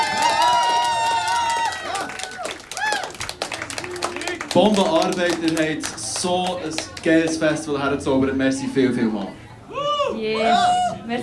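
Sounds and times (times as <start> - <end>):
festival crowd applauding: 0.0 - 7.7
speech: 4.5 - 9.4, 10.1 - 11.2.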